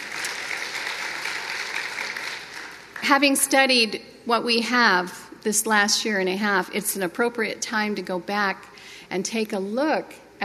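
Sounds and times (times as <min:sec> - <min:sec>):
audience applauding: 0:00.0 - 0:03.1
speech: 0:03.1 - 0:10.4.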